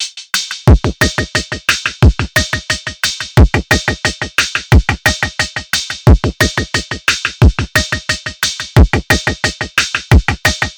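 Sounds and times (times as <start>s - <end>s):
abstract electrofunk breakbeat: 0.0s - 10.7s.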